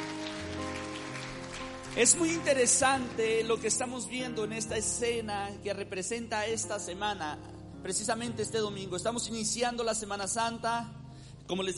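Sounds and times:
audience applauding: 0:00.0 - 0:03.3
speech: 0:02.0 - 0:11.7.

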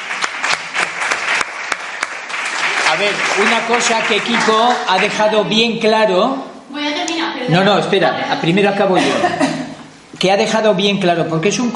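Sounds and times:
audience applause: 0:00.0 - 0:05.4
speech: 0:03.0 - 0:06.5, 0:07.4 - 0:09.4, 0:10.2 - 0:11.7
laughter: 0:08.8 - 0:09.8.

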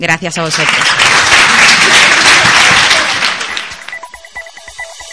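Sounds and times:
speech: 0:00.0 - 0:02.3
applause: 0:00.4 - 0:04.2.

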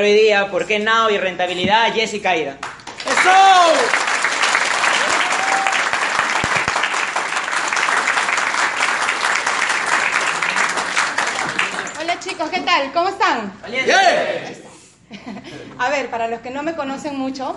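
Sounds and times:
speech: 0:00.0 - 0:04.1, 0:12.4 - 0:17.5
applause: 0:02.6 - 0:12.4
laughter: 0:14.4 - 0:15.8.

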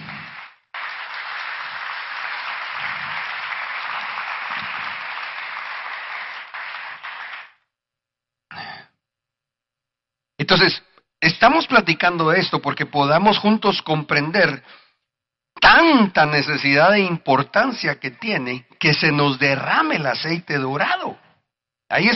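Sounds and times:
audience applause: 0:00.0 - 0:07.6
speech: 0:10.5 - 0:14.8, 0:15.6 - 0:21.2, 0:21.9 - 0:22.1.

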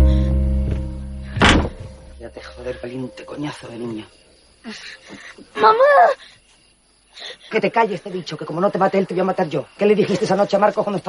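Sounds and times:
low hum: 0:00.0 - 0:04.4
door opening as someone enters: 0:00.7 - 0:02.0
speech: 0:02.3 - 0:06.4, 0:07.2 - 0:11.0.

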